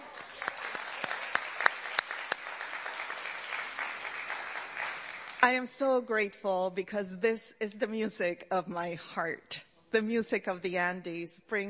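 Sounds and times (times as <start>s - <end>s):
audience applause: 0.0s - 5.5s
speech: 5.4s - 11.6s.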